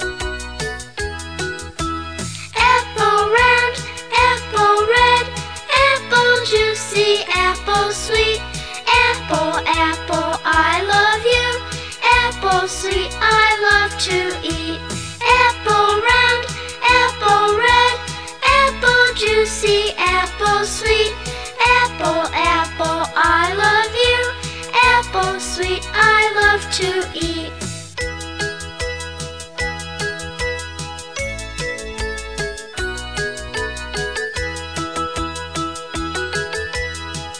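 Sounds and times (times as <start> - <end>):
English children's song: 0.1 - 37.3.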